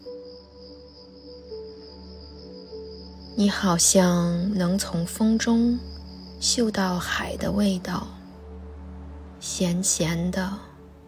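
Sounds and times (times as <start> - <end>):
cicadas chirping: 0.0 - 11.0
speech: 3.4 - 8.2, 9.4 - 10.7.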